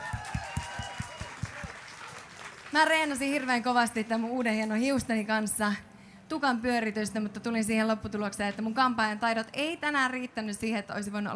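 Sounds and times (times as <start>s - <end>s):
faint audience applause at a festival gig: 0.0s - 4.3s
speech: 2.7s - 11.3s.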